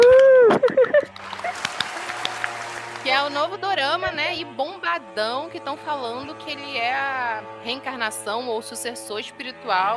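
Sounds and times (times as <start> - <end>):
applause sound effect: 0.0 - 3.4
speech: 3.2 - 9.9.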